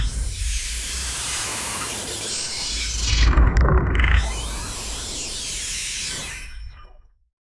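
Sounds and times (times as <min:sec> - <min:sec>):
interdimensional portal sound effect: 0:00.2 - 0:07.0.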